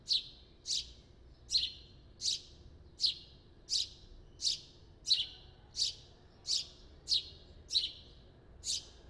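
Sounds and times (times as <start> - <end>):
house sparrow Passer domesticus chirping: 0.0 - 0.9, 1.5 - 2.4, 3.0 - 8.0, 8.6 - 8.9.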